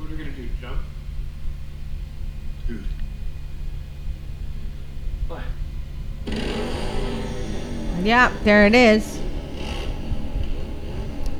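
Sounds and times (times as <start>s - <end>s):
speech: 2.7s - 3.0s, 8.0s - 9.2s
motorcycle engine rumbling: 6.3s - 11.3s.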